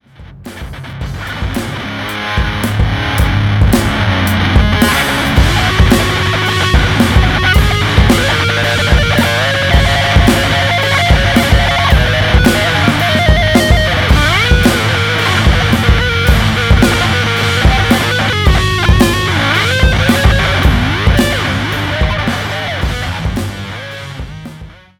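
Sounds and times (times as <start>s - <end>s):
grunge drums: 0.0s - 24.9s.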